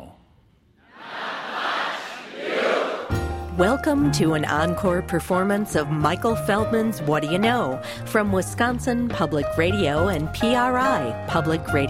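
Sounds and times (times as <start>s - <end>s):
crowd cheering and shouting: 0.9s - 3.2s
speech: 3.6s - 11.8s.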